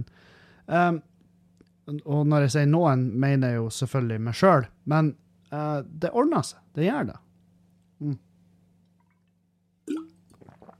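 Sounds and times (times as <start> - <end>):
speech: 0.7 - 1.1, 1.9 - 7.2, 8.0 - 8.3
sip of water being drunk: 8.9 - 10.7.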